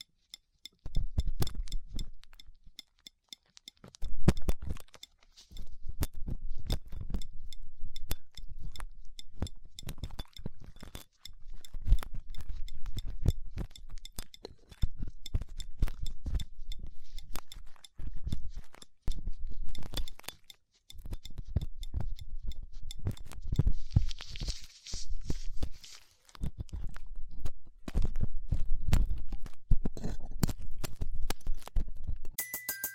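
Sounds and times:
small clicks and clinks: 0.0 - 24.9, 32.3 - 32.9
ear cleaning crackly scratching and rubbing with latex gloves and dental pick: 0.1 - 32.4.

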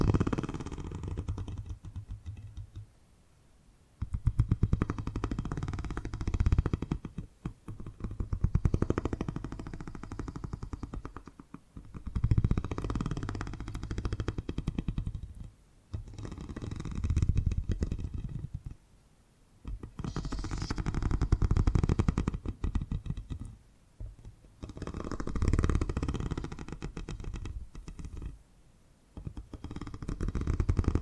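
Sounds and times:
purring: 0.0 - 2.8, 4.0 - 18.8, 19.6 - 28.4, 29.2 - 31.0
faint breathy hiss: 8.8 - 11.4, 20.0 - 21.6.

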